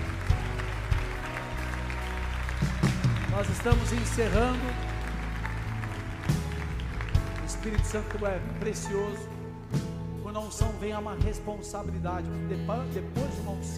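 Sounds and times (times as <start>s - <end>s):
audience applauding: 0.0s - 9.4s
speech: 3.4s - 4.9s, 7.6s - 13.7s.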